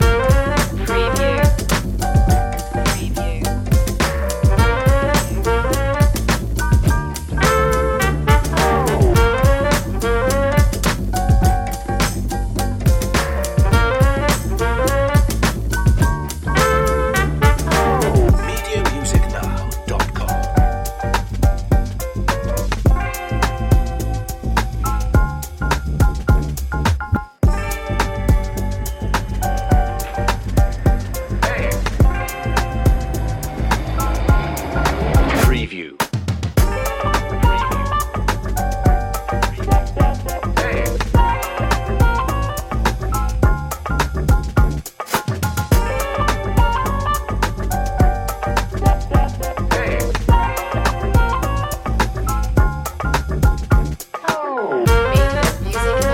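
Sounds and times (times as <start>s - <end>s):
long looping comical detective music: 0.0s - 56.1s.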